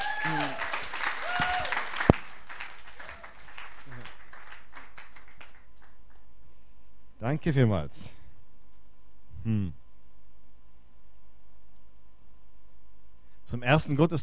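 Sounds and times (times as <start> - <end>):
welcoming applause: 0.0 - 6.2
speech: 7.3 - 8.2, 9.4 - 9.8, 13.5 - 14.2.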